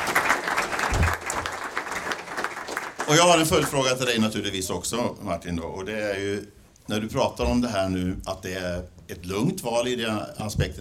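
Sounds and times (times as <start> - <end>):
audience applauding a panelist at a Swedish debate: 0.0 - 4.0
speech: 3.1 - 10.8.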